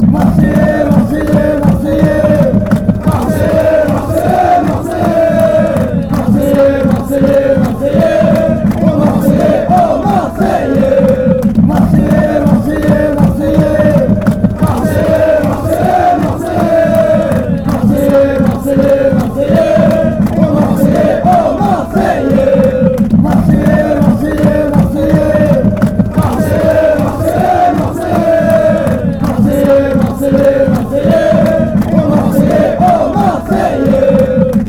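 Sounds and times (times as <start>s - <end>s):
fans chanting: 0.0s - 34.6s.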